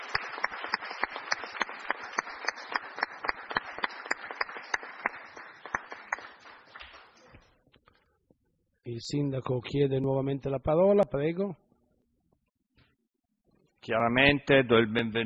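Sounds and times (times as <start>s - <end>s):
group applauding: 0.0s - 7.4s
speech: 8.9s - 11.6s, 13.9s - 15.2s.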